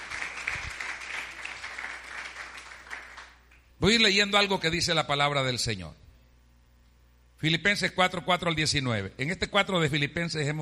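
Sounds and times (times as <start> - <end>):
audience applauding: 0.0 - 3.5
speech: 3.8 - 6.0, 7.4 - 10.6.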